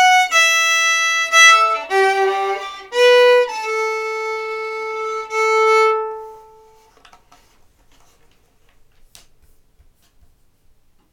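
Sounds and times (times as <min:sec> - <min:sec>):
bridal waltz: 0:00.0 - 0:06.8.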